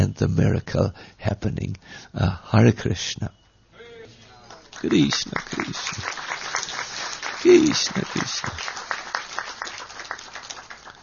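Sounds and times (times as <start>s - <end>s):
speech: 0.2s - 3.4s, 4.8s - 6.6s, 7.4s - 8.9s
polite applause from an audience: 4.3s - 11.0s.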